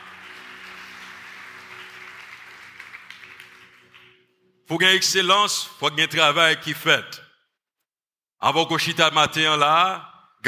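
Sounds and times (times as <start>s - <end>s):
audience applause: 0.0s - 4.2s
speech: 4.7s - 7.2s, 8.4s - 10.4s.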